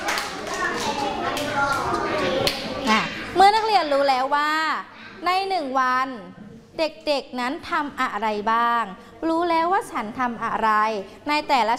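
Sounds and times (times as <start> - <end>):
classroom children applauding: 0.0 - 2.6
speech: 3.9 - 11.7.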